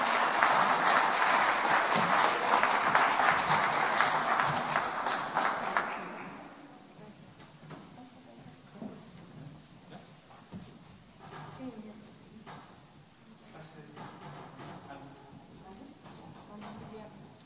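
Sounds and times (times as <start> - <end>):
audience applause: 0.0 - 6.6.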